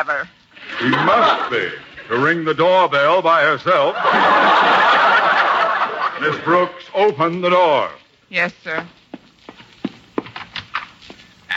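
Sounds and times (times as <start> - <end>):
speech: 0.0 - 5.0, 6.2 - 9.0
laughter: 0.6 - 2.4, 3.7 - 6.8
horse hooves clip-clopping at the door: 7.0 - 11.4.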